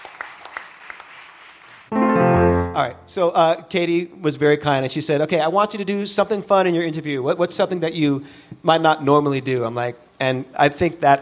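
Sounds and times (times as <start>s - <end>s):
audience applause: 0.0s - 1.9s
speech: 2.8s - 11.2s.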